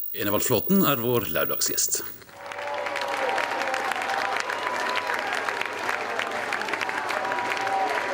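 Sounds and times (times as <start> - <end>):
speech: 0.2 - 2.3
audience cheering and applauding: 2.4 - 8.1.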